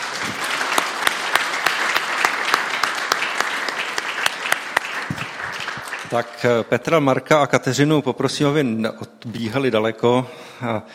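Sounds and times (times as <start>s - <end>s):
audience applause: 0.0s - 6.7s
speech: 6.1s - 10.9s.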